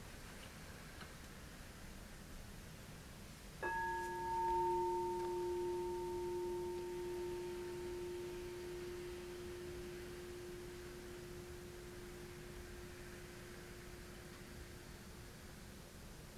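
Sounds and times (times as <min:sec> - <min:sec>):
meditation bell ringing: 0:03.6 - 0:15.4.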